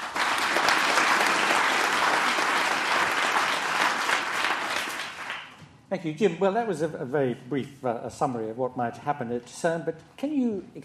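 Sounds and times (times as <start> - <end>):
audience round of applause: 0.0 - 5.6
speech: 5.9 - 10.8.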